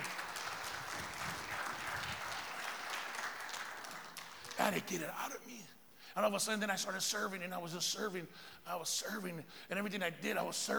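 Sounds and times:
audience applause: 0.0 - 4.9
speech: 4.7 - 10.7.

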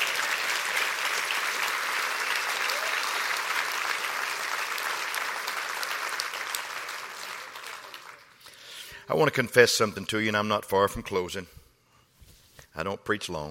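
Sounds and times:
audience applause: 0.0 - 8.4
speech: 9.1 - 11.6, 12.8 - 13.4.

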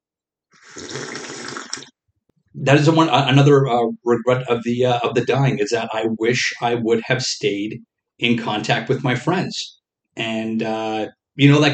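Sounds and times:
sipping coffee: 0.6 - 1.9
speech: 2.6 - 11.7.

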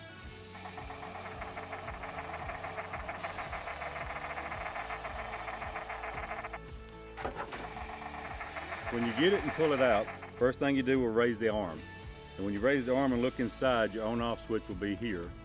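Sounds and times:
low motor hum: 0.3 - 10.4
duck decoy producing mechanical duck chattering: 0.3 - 10.7
speech: 8.9 - 15.4.

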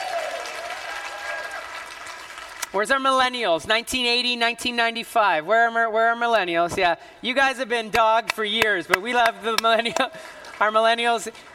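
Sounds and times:
audience clapping: 0.0 - 2.8, 8.0 - 11.5
speech: 2.7 - 11.5.

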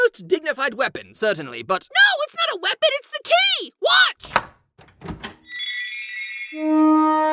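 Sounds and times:
speech: 0.1 - 5.3, 6.5 - 7.3
door opening: 4.2 - 5.5.

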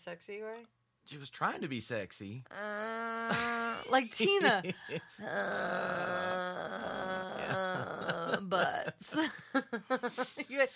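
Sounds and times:
speech: 0.0 - 10.7
person imitating slow drawn-out groan: 2.5 - 3.9, 5.1 - 8.9.

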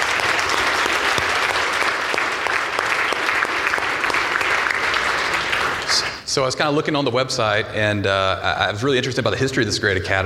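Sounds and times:
audience applause: 0.0 - 6.3
speech: 6.4 - 10.2.

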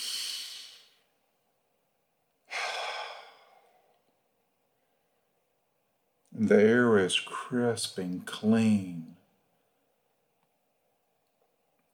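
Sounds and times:
person taking deep breaths during a guided relaxation: 0.0 - 1.0, 2.5 - 3.9
speech: 6.4 - 9.2.

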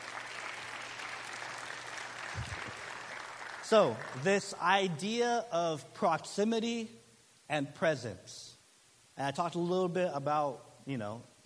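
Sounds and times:
round of applause: 0.0 - 4.3
speech: 3.7 - 8.5, 9.2 - 11.4.

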